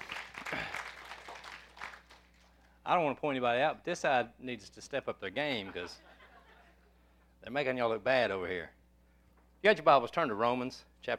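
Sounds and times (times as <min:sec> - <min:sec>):
church congregation applauding during a morning sermon: 0:00.0 - 0:02.5
speech: 0:02.9 - 0:06.1, 0:07.4 - 0:08.8, 0:09.6 - 0:11.1.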